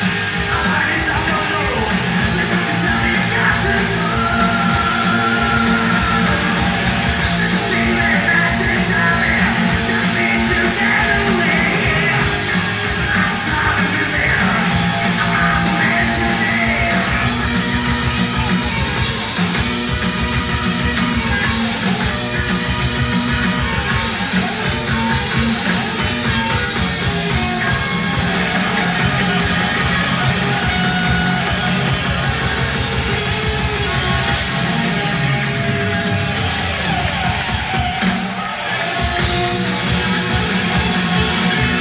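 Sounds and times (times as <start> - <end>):
drum solo: 0.0 - 41.8.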